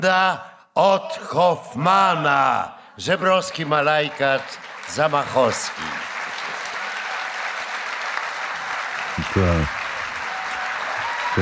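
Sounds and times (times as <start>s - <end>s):
speech: 0.0s - 6.1s, 9.2s - 9.8s
audience applause: 3.7s - 11.4s.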